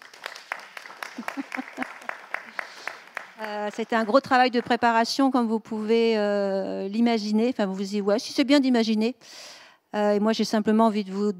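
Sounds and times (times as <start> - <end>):
sparse audience clapping: 0.0 - 5.0
laughter: 1.1 - 2.3
speech: 1.2 - 2.0, 3.4 - 11.3.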